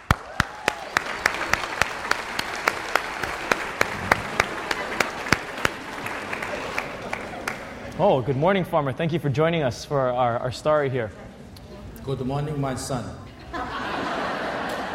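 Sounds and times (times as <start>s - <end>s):
audience clapping to welcome a performer to the stage: 0.0s - 8.0s
laughter: 3.2s - 8.0s, 13.2s - 14.9s
speech: 8.0s - 11.3s, 12.0s - 13.2s.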